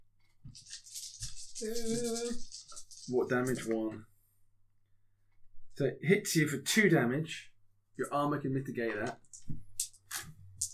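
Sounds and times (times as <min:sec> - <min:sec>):
dice being rolled: 0:00.5 - 0:03.9, 0:08.9 - 0:10.7
speech: 0:01.6 - 0:02.5, 0:03.1 - 0:04.1, 0:05.8 - 0:09.6.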